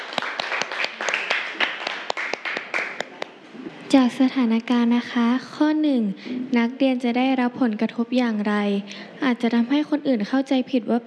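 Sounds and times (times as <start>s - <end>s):
classroom applause: 0.0s - 3.3s
speech: 3.9s - 11.0s.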